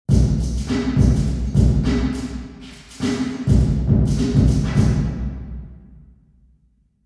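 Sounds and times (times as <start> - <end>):
drum in Jack Lyons Concert Hall: 0.1 - 6.0.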